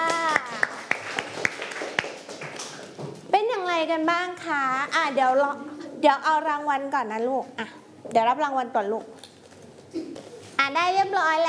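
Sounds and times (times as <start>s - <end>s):
children clapping for a classmate: 0.0s - 3.0s
speech: 3.8s - 9.2s, 10.7s - 11.4s.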